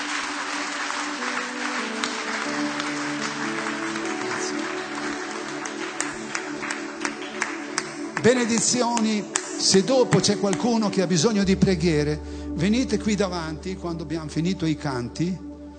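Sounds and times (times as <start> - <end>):
audience applause: 0.0 - 10.8
speech: 8.2 - 15.5.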